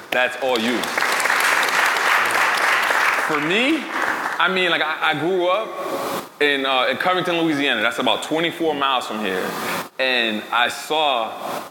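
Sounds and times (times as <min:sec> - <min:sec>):
speech: 0:00.1 - 0:01.1, 0:03.3 - 0:11.6
audience applause: 0:00.5 - 0:04.5.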